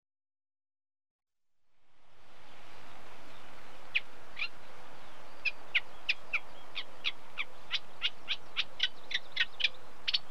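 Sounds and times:
unmated male Eurasian reed warbler singing: 2.5s - 10.2s.

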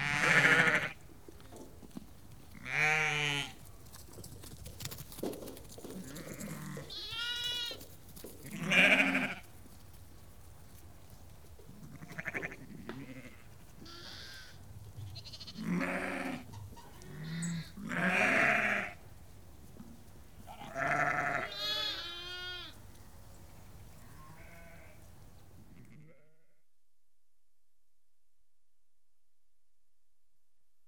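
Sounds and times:
flock of sheep bleating: 0.0s - 1.0s, 2.6s - 3.6s, 6.0s - 7.8s, 8.4s - 9.4s, 11.8s - 19.0s, 20.5s - 22.8s, 24.0s - 25.0s.

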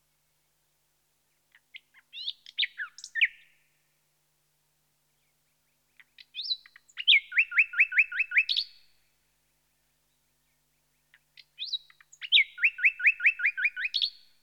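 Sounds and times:
nightingale Luscinia Megarhyncho singing: 1.5s - 3.6s, 5.2s - 8.9s, 10.1s - 14.4s.

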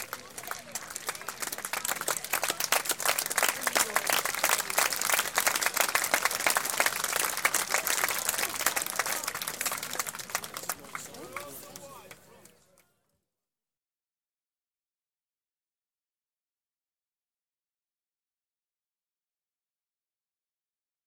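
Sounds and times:
sports crowd at a county cricket match in Clarence Park St Albans: 0.0s - 13.3s.

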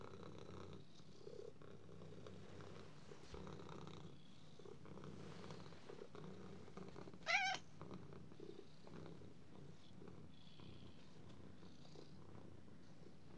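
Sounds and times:
cat purring: 0.0s - 13.3s.

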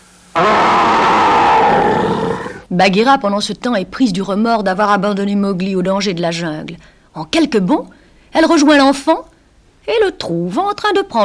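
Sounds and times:
person imitating a fierce bear growl: 0.4s - 2.7s
speech: 2.7s - 11.2s.

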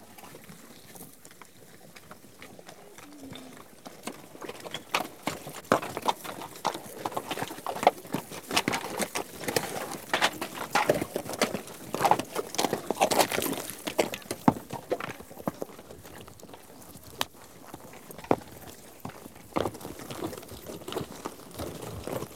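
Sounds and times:
horse hooves clattering: 0.2s - 22.3s.

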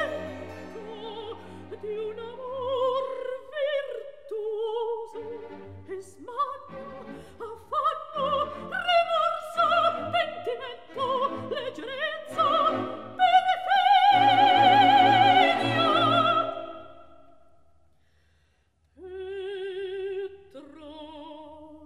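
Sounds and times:
recitative singing: 0.0s - 17.0s.

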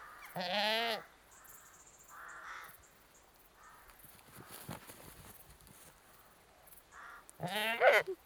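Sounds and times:
annoyed British goat bleating: 0.3s - 1.1s, 7.4s - 8.2s.

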